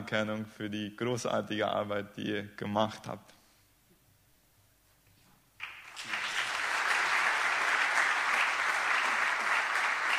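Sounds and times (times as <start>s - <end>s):
speech: 0.1s - 3.4s
audience applause: 5.6s - 10.1s.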